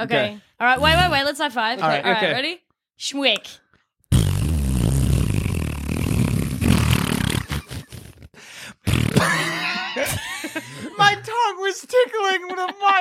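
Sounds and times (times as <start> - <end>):
speech: 0.0 - 3.6, 11.0 - 12.9
voice making a raspberry imitating a fart: 4.1 - 9.8
laughter: 9.3 - 11.3, 12.2 - 12.9.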